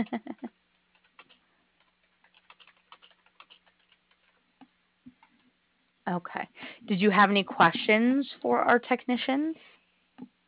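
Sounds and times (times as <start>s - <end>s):
speech: 0.0s - 0.5s, 6.1s - 9.8s
typing on a computer keyboard: 0.9s - 4.4s.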